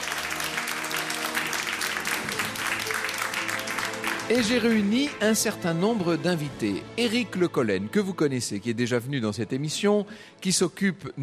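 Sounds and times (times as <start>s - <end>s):
live audience applause at the Cité du Vin in Bordeaux: 0.0s - 5.6s
speech: 4.3s - 11.2s.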